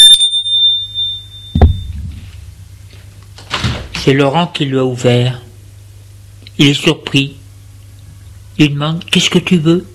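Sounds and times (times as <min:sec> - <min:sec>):
doorbell ringing: 0:00.0 - 0:02.4
low steady hum: 0:00.0 - 0:09.9
dull thump: 0:01.6 - 0:02.4
speech: 0:04.0 - 0:05.4, 0:06.6 - 0:07.4, 0:08.6 - 0:09.9.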